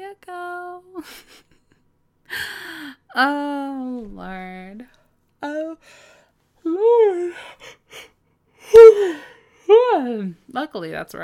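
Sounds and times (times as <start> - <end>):
speech: 1.0 - 1.5, 3.2 - 6.0, 10.0 - 11.2
person yawning: 8.7 - 10.0.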